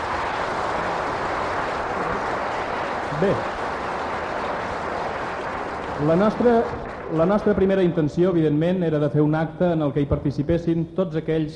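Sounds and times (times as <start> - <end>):
audience applause in a theatre: 0.0 - 7.9
speech: 3.2 - 3.6, 6.0 - 11.5.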